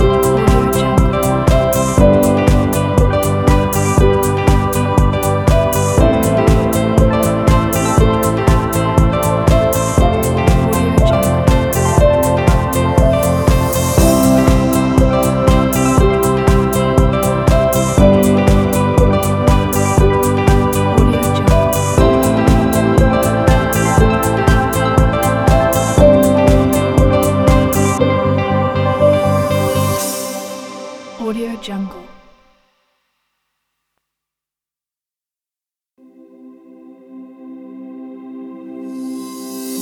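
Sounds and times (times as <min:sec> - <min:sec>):
energetic advertising music: 0:00.0 - 0:31.6.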